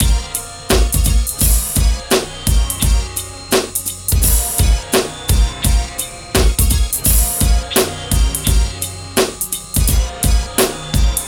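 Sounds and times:
hip hop and R&B drum loops: 0.0s - 11.2s.

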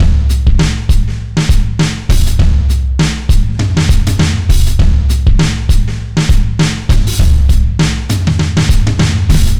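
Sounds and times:
bouncy drum kit beat: 0.0s - 9.5s.

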